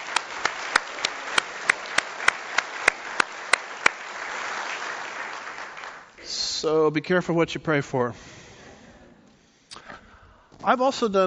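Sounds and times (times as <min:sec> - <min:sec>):
audience round of applause: 0:00.0 - 0:06.2
speech: 0:06.6 - 0:08.4, 0:10.6 - 0:11.2.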